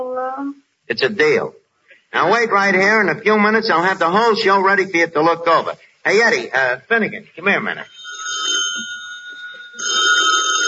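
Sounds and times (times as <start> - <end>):
speech: 0.0 - 8.0
telephone bell ringing: 7.8 - 10.6.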